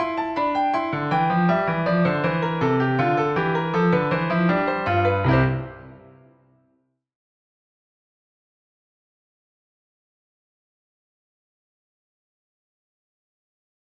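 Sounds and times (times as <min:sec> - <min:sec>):
invention on Kontakt sampled piano: 0:00.0 - 0:06.7.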